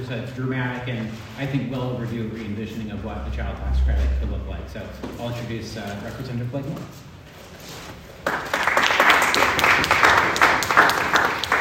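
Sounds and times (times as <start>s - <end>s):
speech: 0.0s - 7.1s
audience clapping: 8.2s - 11.5s.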